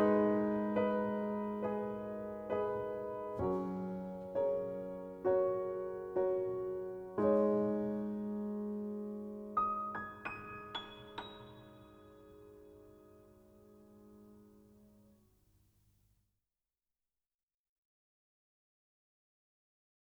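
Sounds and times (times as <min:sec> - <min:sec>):
piano: 0:00.0 - 0:15.4.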